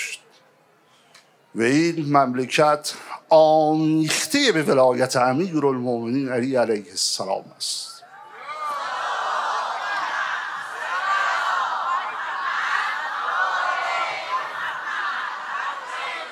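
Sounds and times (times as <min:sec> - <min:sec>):
speech: 0:01.5 - 0:07.9
crowd chanting salawat, blessings on the Prophet: 0:08.4 - 0:16.3.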